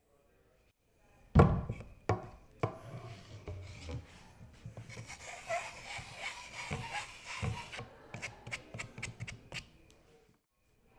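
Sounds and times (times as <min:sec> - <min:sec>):
pool cue: 0:01.4 - 0:09.9.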